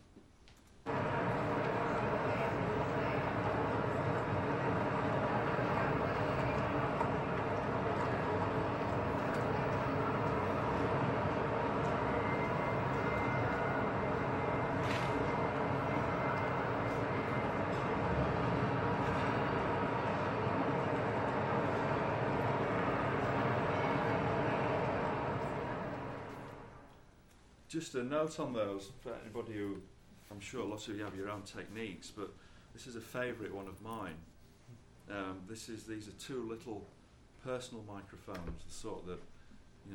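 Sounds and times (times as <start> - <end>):
hum of many human voices: 0.9 - 26.8
speech: 27.7 - 34.3, 35.1 - 39.9.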